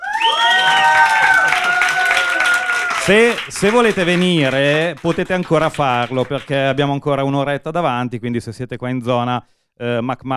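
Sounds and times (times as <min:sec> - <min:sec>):
audience applause and cheering: 0:00.0 - 0:06.8
speech: 0:03.1 - 0:10.3.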